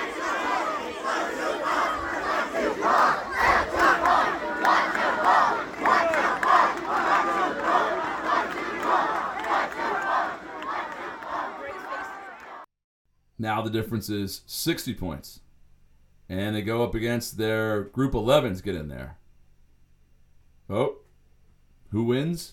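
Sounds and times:
Blue team crowd at a summer camp color war chanting like Spartans: 0.0 - 12.7
speech: 13.4 - 15.4, 16.3 - 19.2, 20.7 - 21.0, 21.9 - 22.5.

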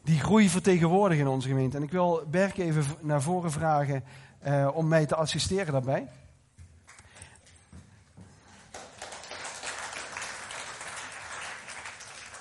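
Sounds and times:
speech: 0.2 - 6.2
audience applause: 8.5 - 12.3.

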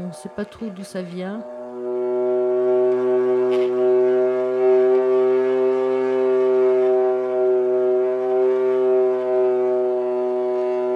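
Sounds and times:
speech: 0.0 - 1.6
hurdy-gurdy drone: 0.0 - 10.9.

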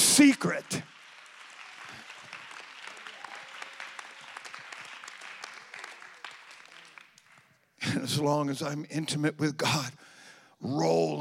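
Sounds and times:
audience clapping hands: 0.0 - 8.0
speech: 0.2 - 0.9, 8.1 - 11.1.

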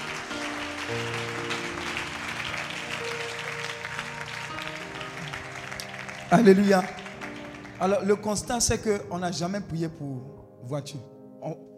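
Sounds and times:
church congregation applauding in praise: 0.0 - 9.4
speech: 0.9 - 1.2, 6.3 - 7.0, 7.8 - 11.7.

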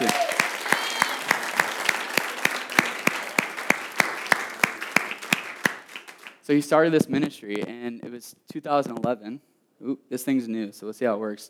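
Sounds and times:
round of applause: 0.0 - 6.5
speech: 6.5 - 11.4.

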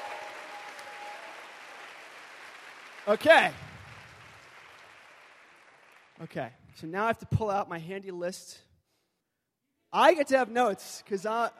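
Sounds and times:
audience applause: 0.0 - 6.3
speech: 3.1 - 3.7, 6.2 - 8.7, 9.9 - 11.5.

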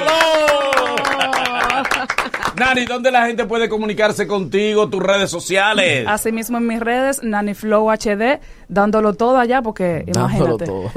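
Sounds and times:
applause: 0.0 - 3.1
laughter: 0.2 - 2.7
speech: 2.6 - 10.9.

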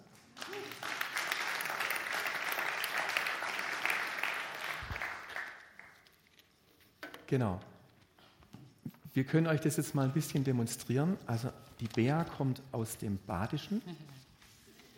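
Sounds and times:
audience applause: 0.0 - 6.0
speech: 7.3 - 7.7, 9.2 - 14.2.

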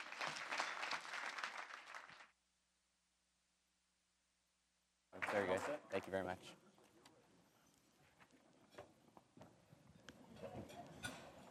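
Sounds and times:
audience applause: 0.0 - 2.3, 5.2 - 6.0
speech: 5.3 - 6.6.

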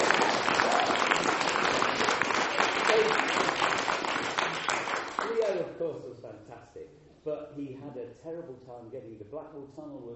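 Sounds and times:
audience applause: 0.0 - 5.5
speech: 5.9 - 10.1.

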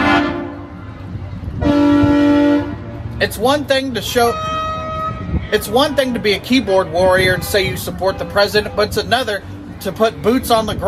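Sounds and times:
truck horn blast: 0.0 - 0.9, 1.6 - 3.0, 4.2 - 5.5
traffic rumble: 0.0 - 10.8
speech: 3.2 - 4.6, 5.5 - 10.8.

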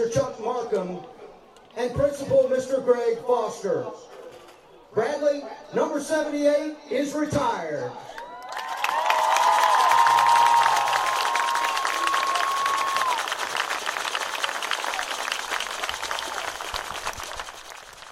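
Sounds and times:
speech: 0.7 - 1.2, 1.8 - 4.2, 4.9 - 8.2
stadium crowd applauding: 8.1 - 18.0
high whistles and cheers: 8.2 - 16.8.

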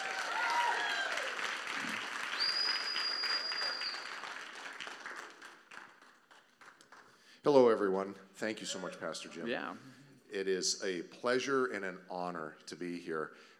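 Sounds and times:
church audience applause welcoming a couple onto the stage: 0.0 - 7.1
speech: 7.4 - 13.5.

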